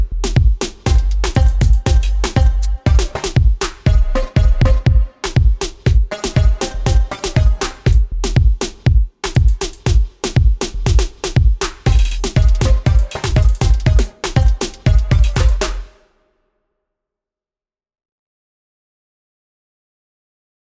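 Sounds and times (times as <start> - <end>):
Groove Agent 5 drum groove: 0.0 - 16.0.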